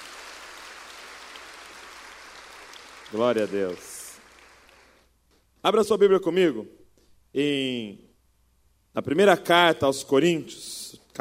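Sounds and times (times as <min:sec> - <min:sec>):
audience applause: 0:00.0 - 0:05.0
speech: 0:03.1 - 0:03.9, 0:05.6 - 0:08.0, 0:09.0 - 0:11.1.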